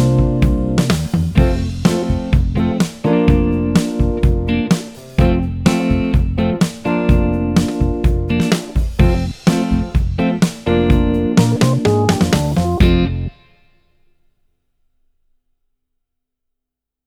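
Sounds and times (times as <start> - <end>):
jazz backing track: 0.0 - 13.4.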